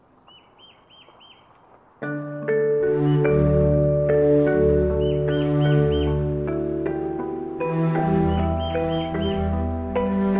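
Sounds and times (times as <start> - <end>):
bird chirping along the Palm Hammock Trail at Merritt Island: 0.0 - 1.8, 2.7 - 3.6, 4.2 - 7.0, 7.6 - 10.1
loud steady chord-like tones: 2.0 - 10.3.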